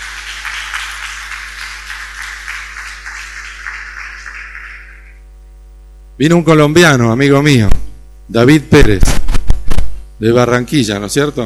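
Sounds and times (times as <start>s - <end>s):
audience applause: 0.0s - 5.1s
speech: 6.2s - 9.2s, 10.2s - 11.4s.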